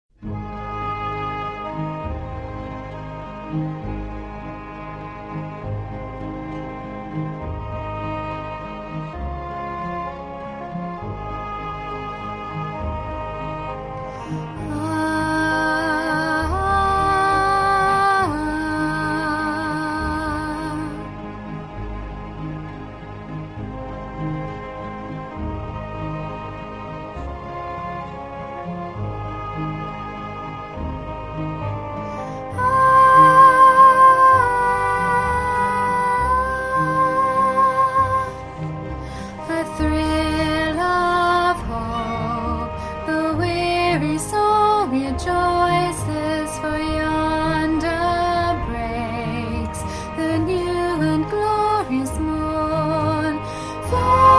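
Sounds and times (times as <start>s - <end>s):
soprano singing top part: 0.3s - 22.5s, 23.6s - 54.3s.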